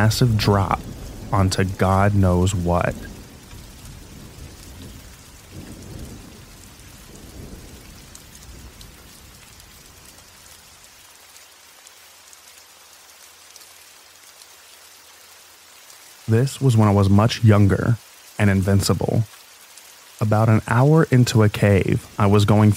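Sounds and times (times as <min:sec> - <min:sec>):
speech: 0:00.0 - 0:03.1, 0:16.3 - 0:19.4, 0:20.2 - 0:22.7
soft low thunder rumbles: 0:00.0 - 0:10.3
rain: 0:00.0 - 0:22.7.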